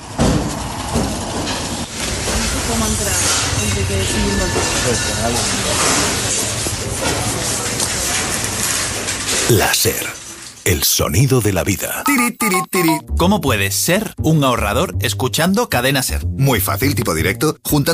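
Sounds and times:
scrapyard ambience in Poblenou, Barcelona: 0.0s - 12.0s
speech: 3.8s - 6.3s, 9.5s - 17.9s.

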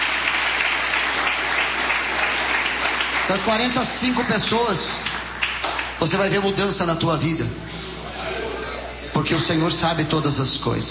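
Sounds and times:
church congregation clapping during worship: 0.0s - 6.4s
speech: 3.3s - 5.2s, 6.0s - 7.8s, 9.2s - 10.9s.

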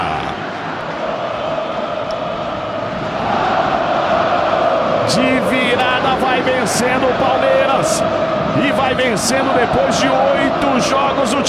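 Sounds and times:
Fluminense football stadium crowd celebrating at the Maracanã: 0.0s - 11.4s
speech: 6.3s - 11.4s.

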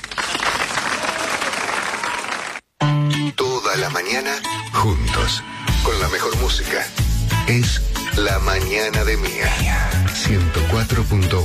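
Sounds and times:
loud applause: 0.0s - 2.7s
speech: 3.8s - 11.4s.

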